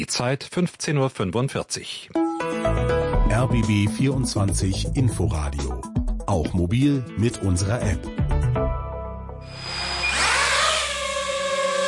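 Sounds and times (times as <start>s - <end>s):
speech: 0.0s - 8.6s
drone flying: 9.4s - 11.8s.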